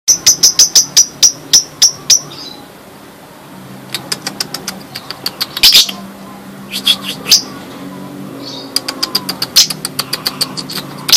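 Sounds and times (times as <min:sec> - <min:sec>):
Lovebird chirps and trills: 0:00.1 - 0:02.7, 0:04.0 - 0:06.1, 0:06.7 - 0:07.7, 0:08.3 - 0:11.1.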